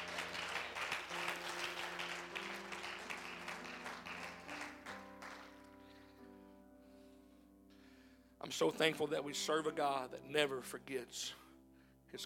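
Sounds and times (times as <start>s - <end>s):
audience clapping hands: 0.0s - 6.1s
speech: 8.4s - 11.4s.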